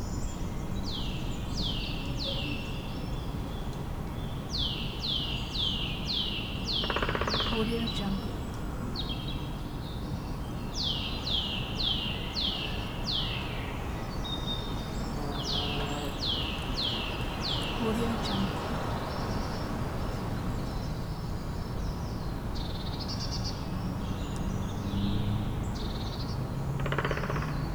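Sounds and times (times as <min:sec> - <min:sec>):
birds in a forest: 0:00.0 - 0:27.7
woodpecker in a forest: 0:06.7 - 0:08.0, 0:26.8 - 0:27.7
bumblebee in a forest: 0:14.8 - 0:18.9.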